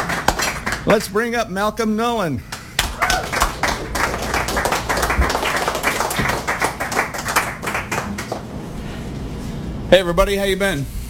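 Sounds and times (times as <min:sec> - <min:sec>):
audience applause at a poetry reading: 0:00.0 - 0:00.9, 0:02.8 - 0:08.6
speech: 0:00.8 - 0:02.5, 0:09.9 - 0:11.0.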